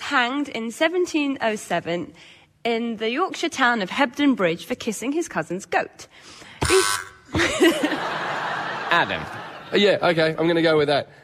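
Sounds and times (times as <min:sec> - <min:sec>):
speech: 0:00.1 - 0:11.2
quiz buzzer: 0:06.6 - 0:07.3
laughter: 0:07.3 - 0:10.4.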